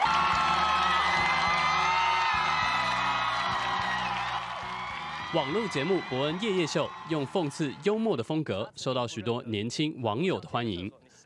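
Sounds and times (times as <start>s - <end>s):
audience applause and cheering: 0.0s - 8.2s
speech: 5.3s - 11.0s.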